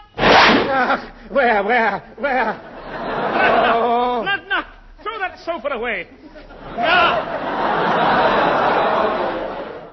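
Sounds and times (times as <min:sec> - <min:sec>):
whoosh: 0:00.2 - 0:00.9
laughter: 0:00.6 - 0:04.4, 0:05.8 - 0:09.9.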